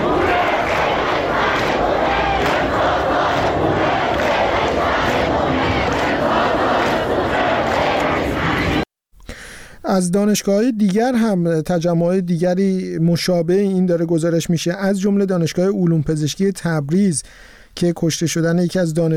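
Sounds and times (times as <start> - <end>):
university students chanting at a protest rally: 0.0 - 8.9
speech: 10.0 - 19.1.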